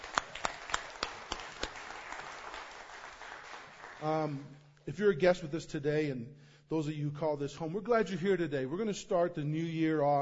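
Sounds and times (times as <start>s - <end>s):
audience round of applause: 0.0s - 4.3s
speech: 4.0s - 10.2s.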